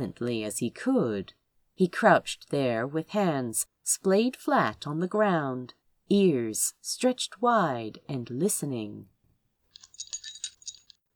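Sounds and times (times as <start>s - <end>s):
speech: 0.0s - 9.1s
metallic jingling: 9.8s - 11.0s.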